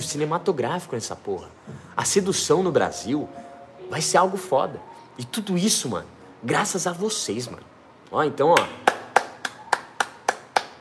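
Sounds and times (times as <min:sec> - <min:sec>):
speech: 0:00.0 - 0:08.8
applause: 0:08.6 - 0:10.7.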